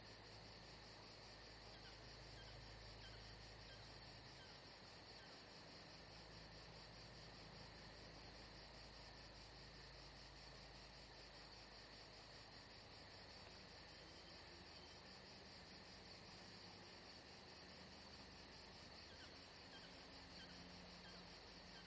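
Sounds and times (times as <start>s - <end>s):
crickets chirping at Saint-Jean-de-Luz: 0.0s - 21.8s.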